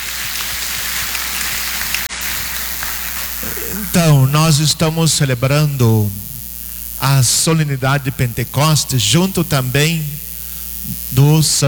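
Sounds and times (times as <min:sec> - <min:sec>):
audience applause: 0:00.0 - 0:04.0
speech: 0:03.8 - 0:06.3, 0:07.0 - 0:10.2, 0:10.9 - 0:11.6.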